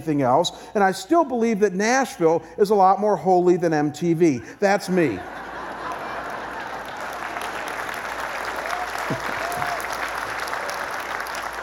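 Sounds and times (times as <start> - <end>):
speech: 0.0 - 5.4
laughter: 4.8 - 8.2
audience applause: 5.5 - 11.6.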